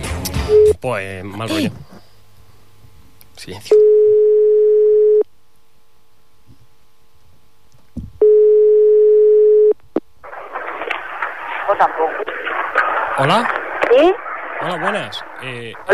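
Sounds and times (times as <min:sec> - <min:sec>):
speech: 0:00.8 - 0:01.9, 0:03.4 - 0:04.2, 0:11.8 - 0:12.5, 0:13.2 - 0:15.9
phone ringback tones: 0:03.8 - 0:05.2, 0:08.2 - 0:09.8
crackly hissing phone line noise: 0:09.8 - 0:15.9.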